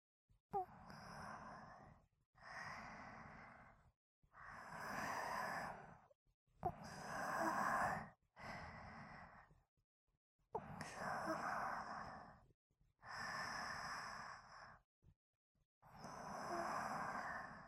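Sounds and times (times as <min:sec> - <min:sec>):
sleeping breathing: 0:00.6 - 0:03.8, 0:04.4 - 0:06.1, 0:06.7 - 0:09.5, 0:10.8 - 0:12.4, 0:13.0 - 0:14.8, 0:16.0 - 0:17.6.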